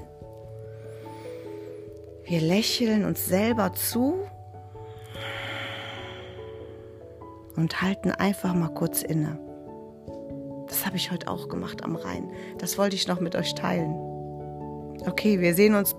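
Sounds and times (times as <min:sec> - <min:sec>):
speech: 0:02.3 - 0:04.4, 0:07.6 - 0:09.4, 0:10.9 - 0:14.1, 0:15.0 - 0:15.9
deep breathing in and out: 0:04.6 - 0:07.4
low steady drone: 0:04.6 - 0:07.4.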